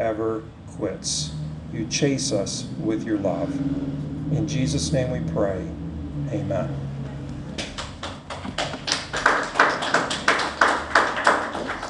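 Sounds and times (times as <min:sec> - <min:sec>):
speech: 0:00.0 - 0:06.8
audience clapping after a sermon: 0:07.6 - 0:11.8.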